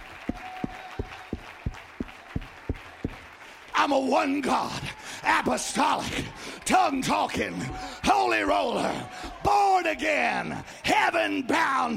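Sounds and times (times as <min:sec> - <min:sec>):
audience clapping hands in unified rhythm: 0:00.0 - 0:07.7
dense crowd noise: 0:00.0 - 0:11.9
speech: 0:03.8 - 0:11.9.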